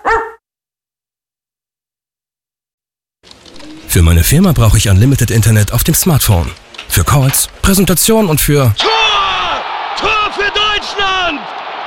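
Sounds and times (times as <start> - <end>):
dog barking: 0.0 - 0.4
speech: 3.9 - 9.2, 10.0 - 11.8.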